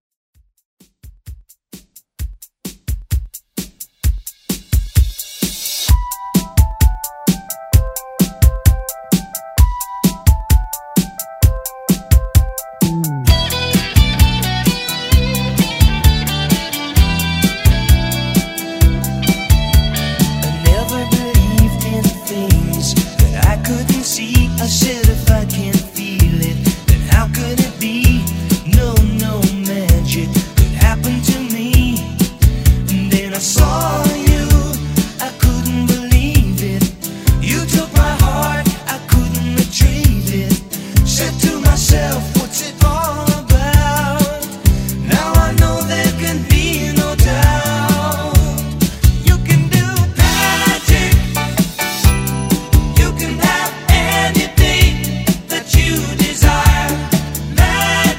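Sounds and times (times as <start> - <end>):
1980s rock music: 5.4 - 58.1.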